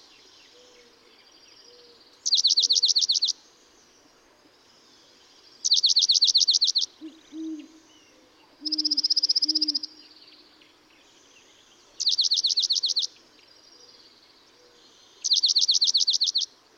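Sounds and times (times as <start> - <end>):
dark-eyed junco trilled songs: 2.3 - 3.3, 5.6 - 7.9, 8.6 - 10.0, 12.0 - 13.1, 15.2 - 16.5.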